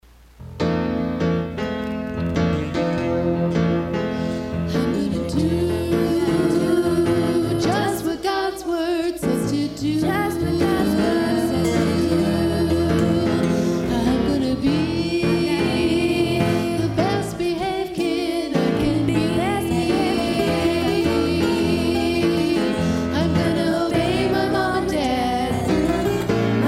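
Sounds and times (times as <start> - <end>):
blues music: 0.4 - 26.6.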